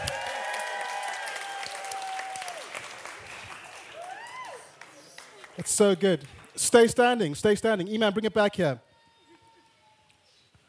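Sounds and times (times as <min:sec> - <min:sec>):
crowd cheering and applause: 0:00.0 - 0:06.6
speech: 0:05.6 - 0:08.9.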